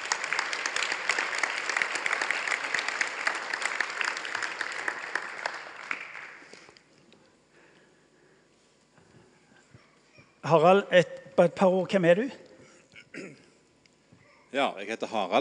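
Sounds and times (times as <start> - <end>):
room full of people applauding: 0.0 - 6.8
speech: 10.5 - 12.4, 14.6 - 15.3.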